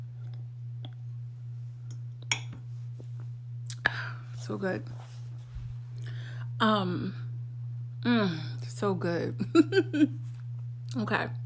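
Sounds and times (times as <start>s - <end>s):
wine glass clinking while taking a sip: 2.3s - 2.6s
speech: 4.5s - 5.1s, 6.6s - 7.2s, 8.0s - 10.3s, 10.9s - 11.4s.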